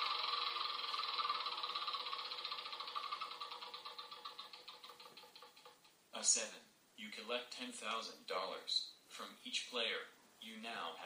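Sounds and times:
The Game of Life board game spinner ticking as it spins: 0.0s - 5.9s
speech: 6.2s - 11.0s.

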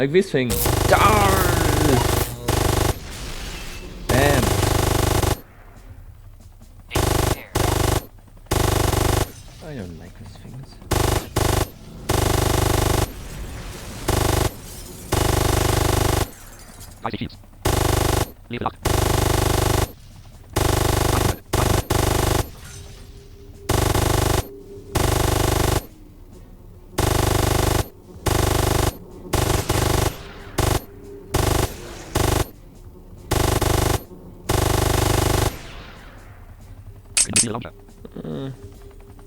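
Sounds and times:
speech: 0.0s - 1.5s, 17.1s - 17.4s
video game automatic gunfire as enemies shoot at the player's base: 0.5s - 5.5s, 6.9s - 9.9s, 10.8s - 22.9s, 23.6s - 26.0s, 27.0s - 32.6s, 33.3s - 35.8s.

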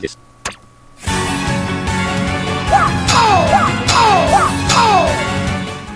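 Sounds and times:
rhythm video game music: 1.2s - 5.9s
shouted wah attack sound effects in a rhythm video game: 2.7s - 5.4s.

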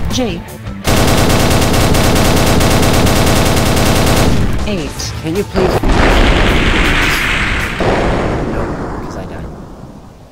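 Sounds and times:
speech: 0.2s - 0.6s, 4.7s - 8.3s
rapid gunfire from enemies in a video game: 0.8s - 4.8s, 5.8s - 8.6s.

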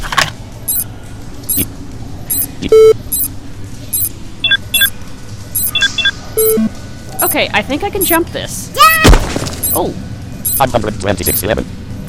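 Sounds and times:
loud buzzy electronic scanner beep: 0.7s - 0.9s, 2.3s - 3.3s, 3.9s - 4.9s, 5.6s - 7.4s, 9.6s - 9.9s, 10.5s - 11.5s
regularly repeating high chirps: 0.7s - 0.9s, 2.3s - 3.3s, 4.0s - 4.9s, 5.6s - 7.4s, 9.6s - 9.8s, 10.5s - 10.7s
short two-tone blips: 0.7s - 0.9s, 2.3s - 3.3s, 3.9s - 5.0s, 5.6s - 7.4s, 9.6s - 9.9s, 10.5s - 11.5s
speech: 1.6s - 1.8s, 2.6s - 3.0s, 7.3s - 8.8s, 9.8s - 11.8s.

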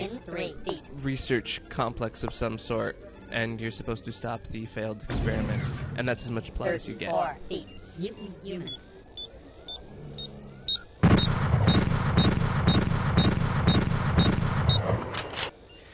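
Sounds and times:
short high-pitched electronic beeps from a night scope in a game: 0.0s - 1.7s, 2.7s - 5.6s, 6.2s - 15.0s
speech: 0.5s - 8.9s.

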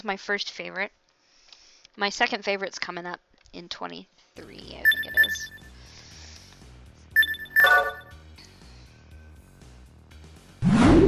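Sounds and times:
speech: 0.0s - 1.0s, 2.0s - 5.6s
video game endurance-up bell-like electronic chimes: 4.9s - 5.7s, 7.2s - 8.1s.

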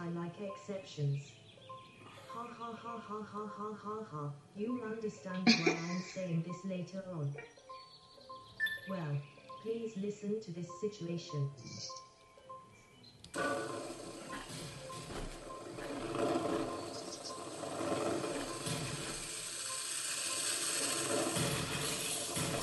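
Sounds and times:
speech: 0.4s - 1.4s, 2.4s - 7.6s, 8.9s - 12.1s, 13.3s - 13.8s
skateboards wrecking toy cars game sound effect: 13.3s - 22.6s.

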